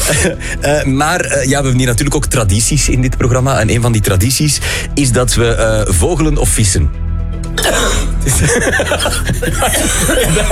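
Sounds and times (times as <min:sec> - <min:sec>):
laughter: 0:00.0 - 0:00.5, 0:08.2 - 0:10.5
speech: 0:00.1 - 0:07.0, 0:07.6 - 0:10.5
person coughing after choking on a pretzel: 0:07.6 - 0:08.3, 0:09.6 - 0:10.5.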